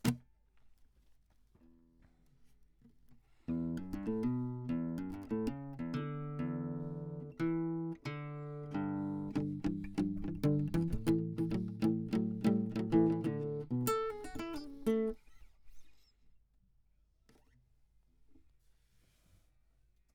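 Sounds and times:
classical guitar: 3.5 - 16.1.

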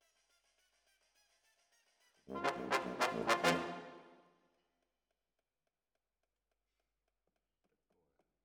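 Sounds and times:
brass instruments: 2.3 - 4.1.

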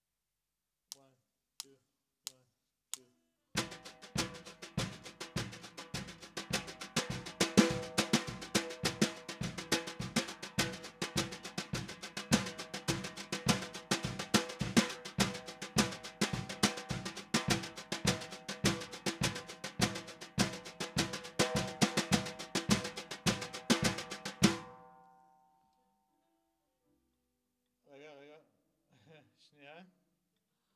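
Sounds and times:
snare drum: 3.6 - 24.9.

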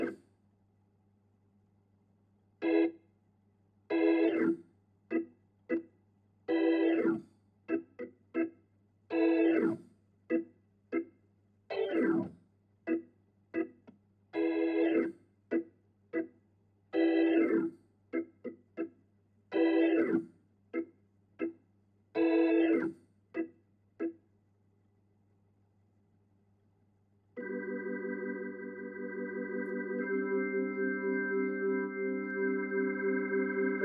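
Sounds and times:
Hammond organ: 2.6 - 2.9, 3.9 - 5.8, 6.5 - 8.5, 9.1 - 11.1, 11.7 - 12.3, 12.9 - 13.8, 14.4 - 16.3, 16.9 - 18.9, 19.5 - 21.6, 22.2 - 24.1, 27.4 - 33.8.

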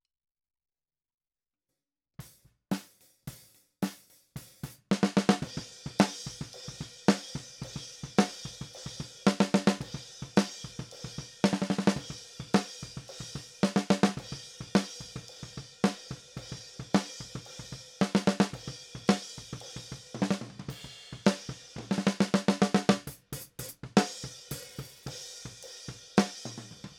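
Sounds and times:
snare drum: 2.7 - 7.4, 8.2 - 15.3, 18.0 - 26.9.

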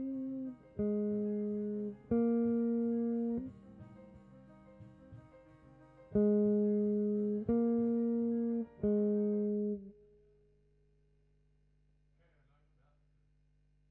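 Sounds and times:
guitar: 0.0 - 10.6.

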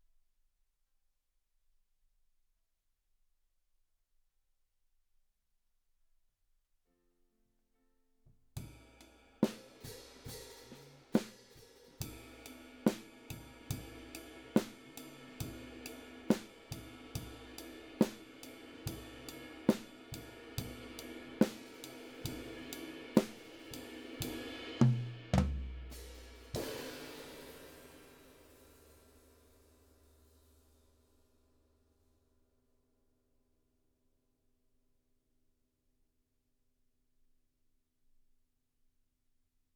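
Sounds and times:
drums: 8.6 - 31.3.

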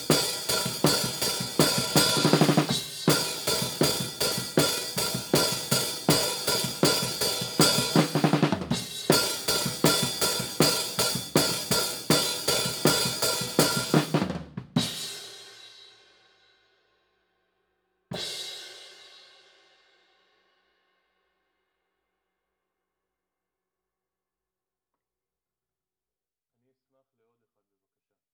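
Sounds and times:
hi-hat: 0.0 - 14.2.

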